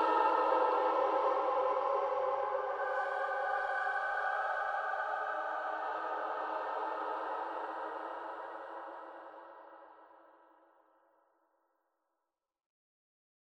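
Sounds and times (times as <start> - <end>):
choir singing: 0.0 - 10.0.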